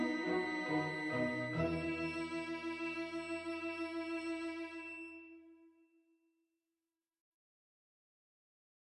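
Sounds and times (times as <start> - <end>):
arioso for two violins and string orchestra: 0.0 - 5.2.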